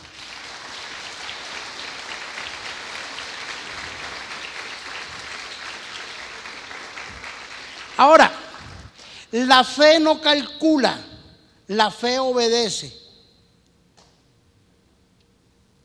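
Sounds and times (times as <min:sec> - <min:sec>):
audience applause: 0:00.0 - 0:09.0
speech: 0:08.0 - 0:08.4, 0:09.3 - 0:11.1, 0:11.7 - 0:13.0.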